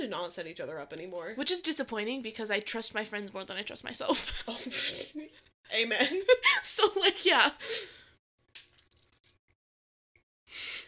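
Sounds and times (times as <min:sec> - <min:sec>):
speech: 0:00.0 - 0:08.0
person sipping water: 0:08.5 - 0:09.5.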